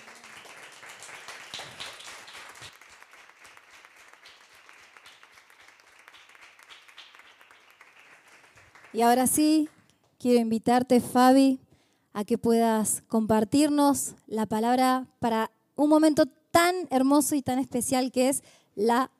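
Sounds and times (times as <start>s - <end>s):
loud applause: 0.0s - 9.0s
speech: 8.9s - 11.6s, 12.2s - 19.1s.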